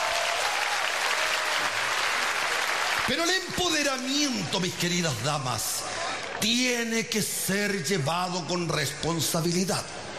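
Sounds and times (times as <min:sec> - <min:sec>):
audience applause: 0:00.0 - 0:03.5
speech: 0:03.1 - 0:10.0.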